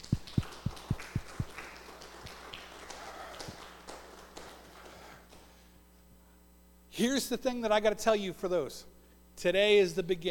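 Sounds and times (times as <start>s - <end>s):
audience applause: 0.0s - 5.4s
speech: 7.0s - 10.2s.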